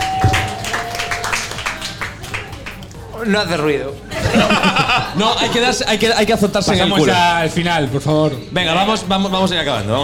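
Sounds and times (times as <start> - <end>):
audience applause: 0.0 - 2.9
speech: 3.2 - 10.0
laughter: 4.0 - 6.9.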